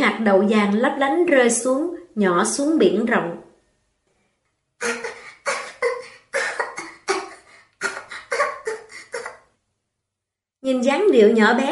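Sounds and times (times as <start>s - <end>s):
speech: 0.0s - 3.4s, 4.8s - 5.1s, 10.7s - 11.6s
small child coughing after swallowing seawater: 4.8s - 9.5s.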